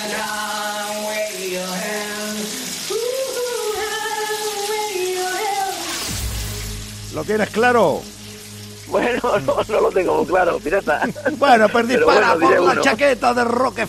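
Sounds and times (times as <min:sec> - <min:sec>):
person singing in the shower: 0:00.0 - 0:06.0
running shower water: 0:00.0 - 0:13.8
speech: 0:07.2 - 0:08.2, 0:08.9 - 0:13.8
laughter: 0:08.9 - 0:13.0.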